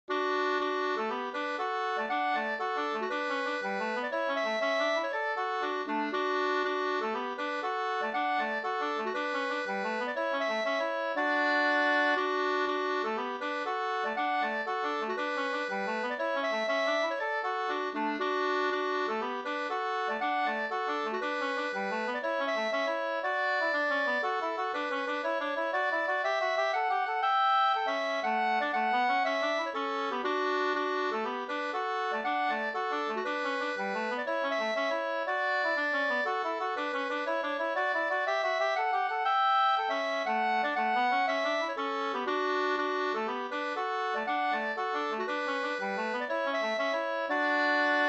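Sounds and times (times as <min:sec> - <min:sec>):
hamburska folk dance: 0:00.1 - 0:48.0.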